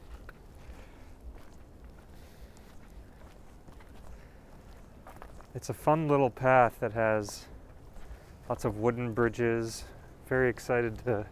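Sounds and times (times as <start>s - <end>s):
continuous low rumble: 0.0s - 11.3s
footsteps on a woodland path in Pelham Bay Park: 0.0s - 11.3s
speech: 5.6s - 7.5s, 8.5s - 11.3s.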